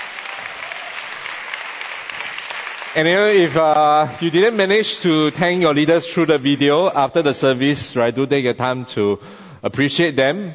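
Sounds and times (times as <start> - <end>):
audience applause at a church service: 0.0 - 6.9
speech: 2.9 - 10.5.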